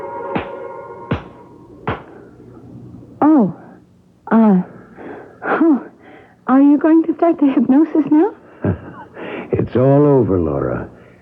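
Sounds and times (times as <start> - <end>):
faint steady hum: 0.0 - 11.2
sharp hand claps: 0.4 - 2.1
speech: 6.8 - 8.8, 9.7 - 11.0.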